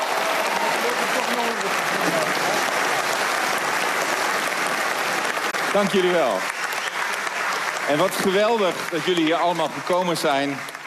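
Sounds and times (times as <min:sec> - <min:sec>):
applause at a political party gathering: 0:00.0 - 0:10.8
speech: 0:05.7 - 0:06.6, 0:07.9 - 0:10.7.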